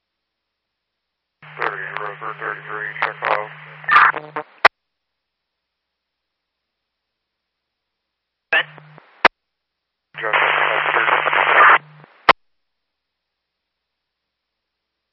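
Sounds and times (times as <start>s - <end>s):
radio static: 1.4s - 4.7s, 8.5s - 9.3s, 10.2s - 12.4s
speech: 2.0s - 4.6s.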